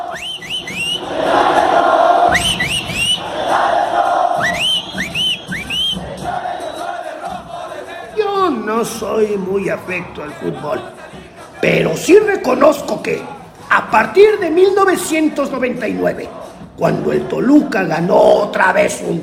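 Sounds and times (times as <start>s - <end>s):
rising whistle blasts: 0.0s - 1.2s, 2.3s - 7.1s
football supporters' group chanting in unison: 0.0s - 14.2s, 15.1s - 19.2s
speech: 0.1s - 1.1s, 8.8s - 11.0s, 11.6s - 19.2s.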